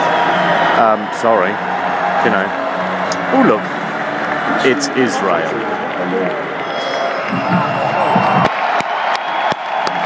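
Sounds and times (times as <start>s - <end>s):
large crowd applause and cheering: 0.0s - 10.0s
speech: 1.2s - 2.6s, 3.3s - 3.8s, 4.6s - 6.6s, 7.3s - 8.0s.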